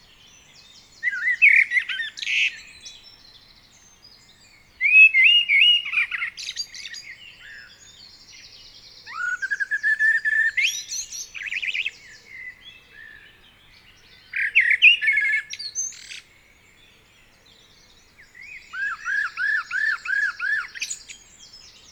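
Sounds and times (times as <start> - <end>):
common blackbird singing: 0.0 - 21.8.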